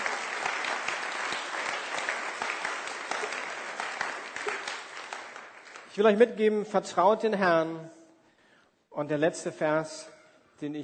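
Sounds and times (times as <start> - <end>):
audience clapping: 0.0 - 6.2
speech: 6.0 - 8.0, 9.0 - 10.8.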